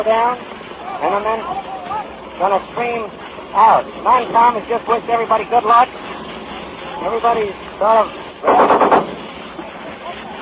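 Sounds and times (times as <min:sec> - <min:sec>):
speech: 0:00.0 - 0:06.1, 0:07.0 - 0:09.1
machine gun firing: 0:08.4 - 0:09.2.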